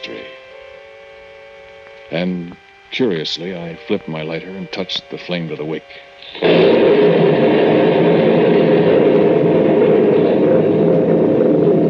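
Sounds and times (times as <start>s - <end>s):
speech: 2.1s - 7.6s
thunder rumbling: 6.2s - 11.8s.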